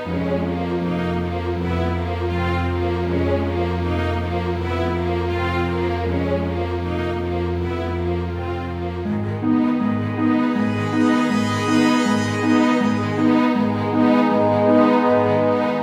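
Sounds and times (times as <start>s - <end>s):
medium action music: 0.1s - 15.8s.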